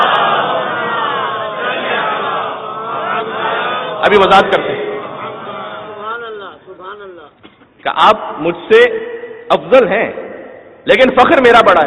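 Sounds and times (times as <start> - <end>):
massed voices chanting a religious salutation slogan to Imam Hussain: 0.0 - 6.8
speech: 4.0 - 4.8, 7.8 - 10.2, 10.8 - 11.8.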